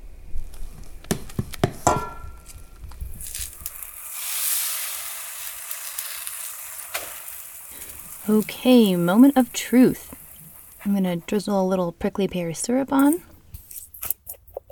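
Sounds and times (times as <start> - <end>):
pancake sizzling in a pan: 3.0 - 11.4
speech: 8.3 - 10.2, 10.8 - 13.3.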